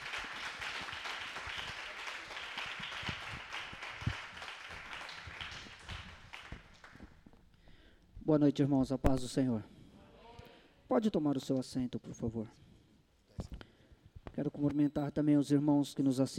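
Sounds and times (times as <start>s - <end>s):
crowd applause: 0.0s - 7.1s
speech: 8.3s - 9.8s, 10.9s - 12.6s, 14.4s - 16.3s.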